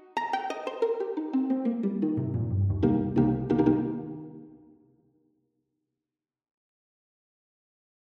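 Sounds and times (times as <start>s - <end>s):
string quartet: 0.0s - 4.5s.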